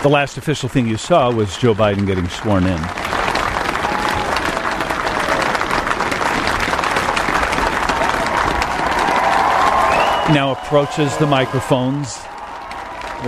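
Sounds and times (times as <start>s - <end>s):
speech: 0.0s - 3.1s, 10.3s - 12.4s
large crowd applause at presidential inauguration: 0.0s - 13.2s
faint cheering voices: 2.5s - 13.2s.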